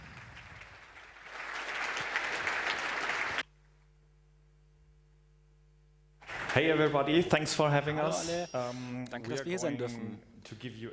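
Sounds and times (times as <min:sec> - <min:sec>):
audience applause: 0:00.0 - 0:03.4, 0:06.2 - 0:07.3
speech: 0:06.6 - 0:10.9.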